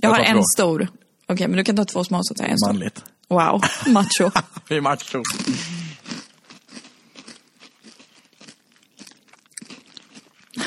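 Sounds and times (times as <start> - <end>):
speech: 0.0 - 5.9
people chewing crunchy food: 5.0 - 10.6.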